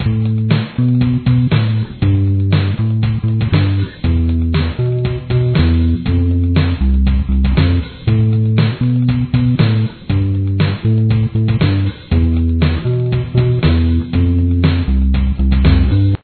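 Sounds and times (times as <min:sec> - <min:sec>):
bass: 0:00.0 - 0:16.2.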